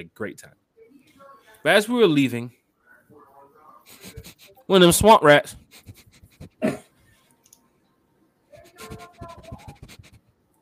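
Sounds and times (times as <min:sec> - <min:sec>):
speech: 0:00.0 - 0:00.6, 0:01.6 - 0:02.6, 0:04.0 - 0:06.0
person sniffing into a microphone imitating a dog: 0:05.6 - 0:06.8, 0:08.7 - 0:10.2.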